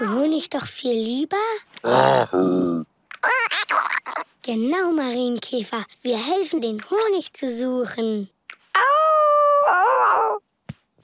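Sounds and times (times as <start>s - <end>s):
speech: 0.4s - 8.9s
dog howling: 8.8s - 10.4s.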